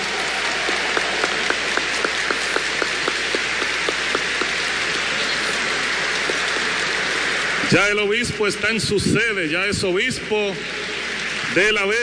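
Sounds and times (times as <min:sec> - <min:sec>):
audience applause: 0:00.0 - 0:08.6
speech: 0:07.7 - 0:10.9, 0:11.5 - 0:12.0.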